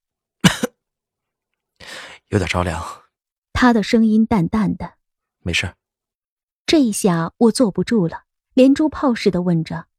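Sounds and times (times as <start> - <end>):
person coughing: 0.4 - 0.8
speech: 2.3 - 3.0, 3.6 - 5.8, 6.7 - 9.9.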